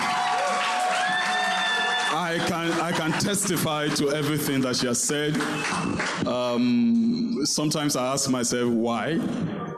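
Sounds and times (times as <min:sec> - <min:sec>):
high sustained vocal whoops: 0:00.0 - 0:02.2
scattered cheers: 0:00.0 - 0:04.2
audience clapping: 0:00.0 - 0:06.6
speech: 0:02.4 - 0:09.6.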